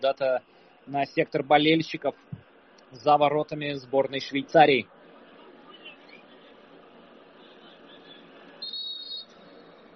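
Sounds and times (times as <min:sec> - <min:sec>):
speech: 0:00.0 - 0:05.0
referee's whistle blast: 0:08.6 - 0:09.4.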